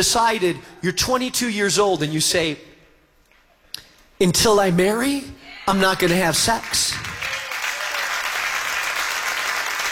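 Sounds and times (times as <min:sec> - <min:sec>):
speech: 0:00.0 - 0:02.7, 0:04.2 - 0:07.1
audience clapping: 0:06.4 - 0:09.9.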